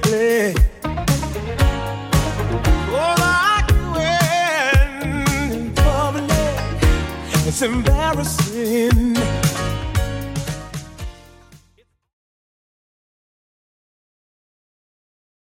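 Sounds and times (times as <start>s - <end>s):
80s Redrum drum machine beat: 0.0s - 11.8s.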